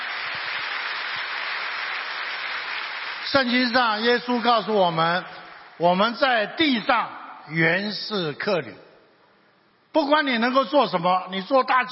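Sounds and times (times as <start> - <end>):
audience applause: 0.0 - 3.9
speech: 3.3 - 8.8, 10.0 - 11.9.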